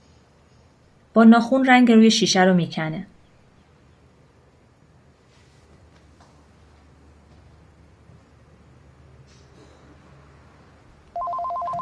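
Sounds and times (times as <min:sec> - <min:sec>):
speech: 0:01.2 - 0:03.2
telephone ringing with a warbling trill: 0:11.1 - 0:11.8.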